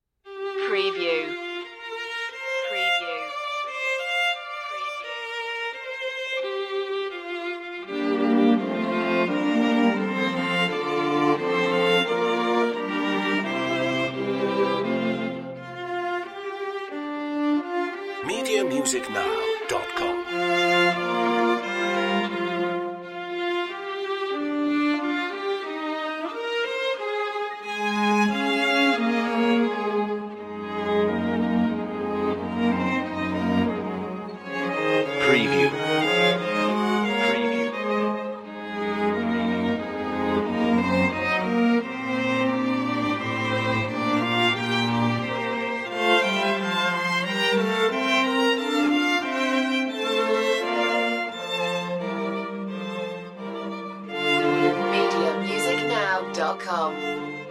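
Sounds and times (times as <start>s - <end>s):
string quartet: 0.3s - 57.4s.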